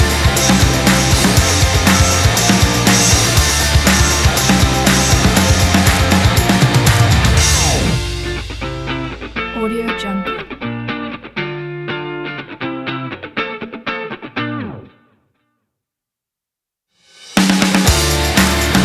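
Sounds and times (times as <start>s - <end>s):
Californian rock music: 0.0s - 13.2s, 17.6s - 18.8s.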